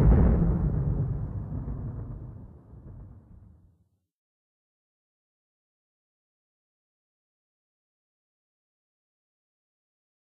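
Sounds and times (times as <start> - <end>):
ambient thunder: 0.0 - 3.7.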